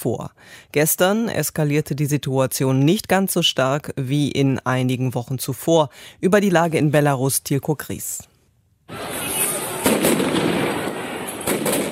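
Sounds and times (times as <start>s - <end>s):
speech: 0.0s - 8.3s
stun grenades exploding: 8.9s - 11.9s.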